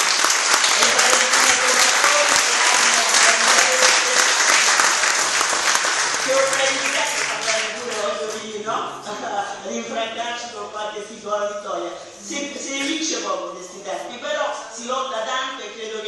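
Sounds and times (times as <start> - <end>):
crowd applauding: 0.0 - 8.2
speech: 9.7 - 16.0.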